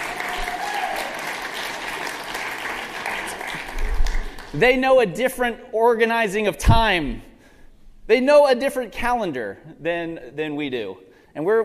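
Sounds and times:
audience applause for elementary students: 0:00.0 - 0:04.6
speech: 0:04.6 - 0:07.3, 0:08.1 - 0:11.6.

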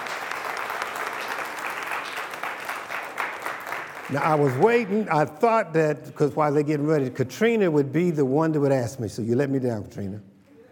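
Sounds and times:
room full of people clapping: 0:00.0 - 0:05.4
speech: 0:04.1 - 0:10.3.

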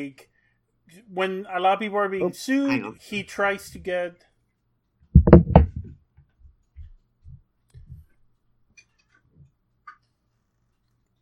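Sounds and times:
speech: 0:00.0 - 0:00.3, 0:00.9 - 0:04.3
door closing thuds: 0:05.2 - 0:05.9.

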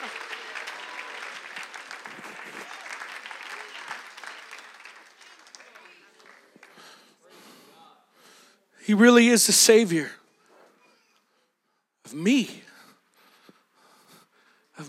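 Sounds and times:
audience clapping hands: 0:00.0 - 0:07.2
speech: 0:08.9 - 0:10.2.

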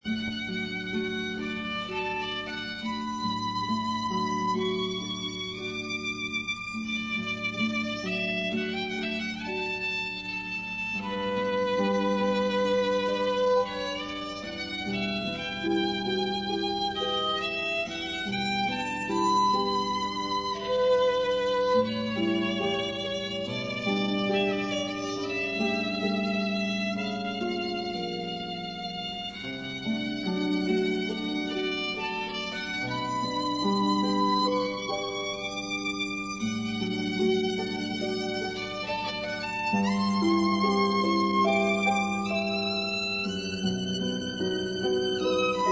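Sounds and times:
meditative harp playing: 0:00.0 - 0:45.6.

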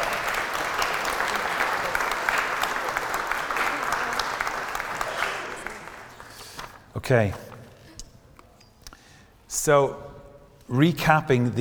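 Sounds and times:
audience round of applause: 0:00.0 - 0:06.6
speech: 0:07.1 - 0:07.5, 0:09.6 - 0:10.1, 0:10.7 - 0:11.6.

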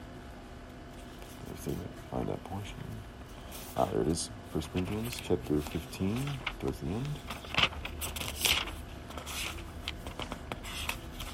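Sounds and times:
speech: 0:01.6 - 0:07.6
fingers turning dry paper pages: 0:03.4 - 0:11.3.

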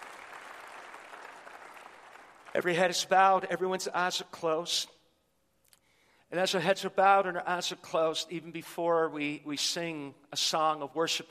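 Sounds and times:
audience clapping: 0:00.0 - 0:02.9
speech: 0:02.6 - 0:05.0, 0:06.3 - 0:11.2.

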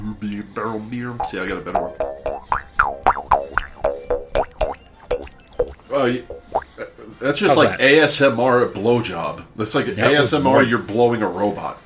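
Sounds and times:
speech: 0:00.5 - 0:02.6, 0:05.9 - 0:06.4, 0:07.1 - 0:11.8
mouth harp twanging: 0:01.2 - 0:06.7.

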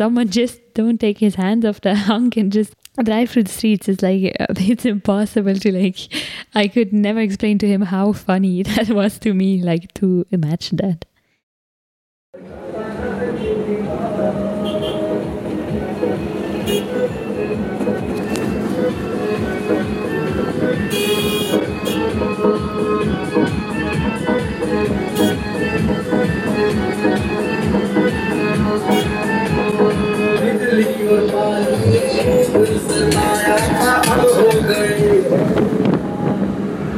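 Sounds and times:
speech: 0:00.0 - 0:11.1
busy road noise: 0:12.4 - 0:36.9
big truck engine rumbling: 0:12.5 - 0:36.9.

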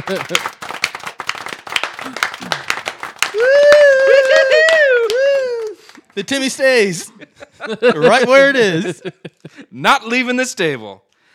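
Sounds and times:
speech: 0:00.0 - 0:00.6, 0:06.2 - 0:11.1
smattering of applause: 0:00.0 - 0:07.1
laughter: 0:00.0 - 0:09.8.

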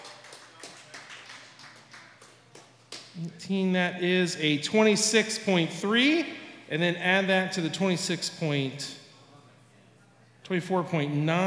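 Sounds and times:
crowd applause for a poet: 0:00.0 - 0:03.2
speech: 0:03.2 - 0:09.0, 0:10.5 - 0:11.4.

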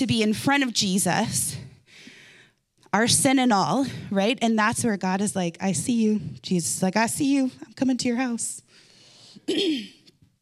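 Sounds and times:
speech: 0:00.0 - 0:01.6, 0:02.9 - 0:08.6, 0:09.5 - 0:10.0
faint breathing: 0:01.7 - 0:02.6, 0:08.7 - 0:09.5
person coughing: 0:09.4 - 0:10.2.

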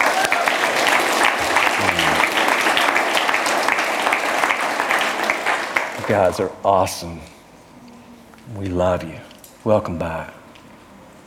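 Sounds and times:
church congregation applause: 0:00.0 - 0:06.7
speech: 0:06.1 - 0:07.4, 0:08.5 - 0:10.4.

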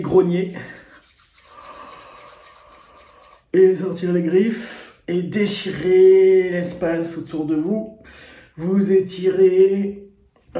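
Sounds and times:
speech: 0:00.0 - 0:00.8, 0:03.6 - 0:10.5
hands rubbing together: 0:00.0 - 0:03.5.

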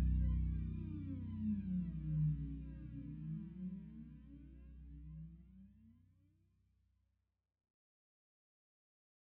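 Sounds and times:
Fender electric bass guitar: 0:00.0 - 0:05.1.

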